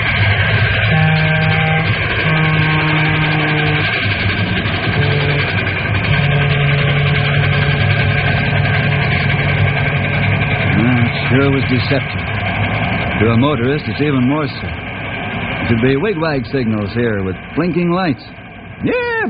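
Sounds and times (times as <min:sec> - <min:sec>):
heavy train rumbling past a crossing: 0:00.0 - 0:19.2
long low train horn blasts: 0:00.8 - 0:09.9
speech: 0:11.3 - 0:12.3, 0:13.2 - 0:14.8, 0:15.7 - 0:19.2.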